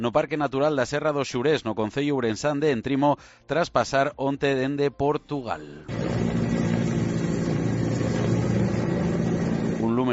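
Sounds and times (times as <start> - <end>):
speech: 0.0 - 6.3
firefighting helicopters flying overhead: 5.9 - 10.0.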